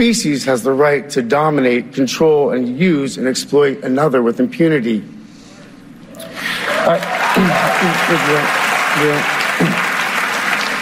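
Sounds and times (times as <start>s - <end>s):
speech: 0.0s - 5.2s, 6.3s - 9.9s
audience applause: 6.2s - 10.8s.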